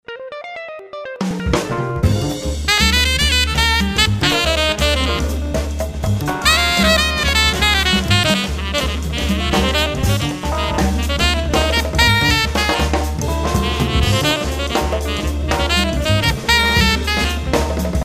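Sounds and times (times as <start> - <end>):
jazz bar ambience: 0.9 - 18.0.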